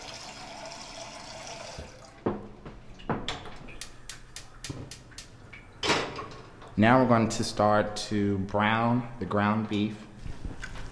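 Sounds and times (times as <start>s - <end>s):
pot filling with water to boil: 0.0s - 2.2s
speech: 6.8s - 10.1s.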